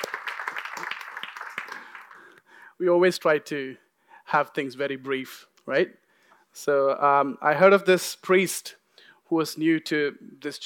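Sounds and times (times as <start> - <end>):
audience applause: 0.0 - 2.3
speech: 2.8 - 6.0, 6.6 - 10.6.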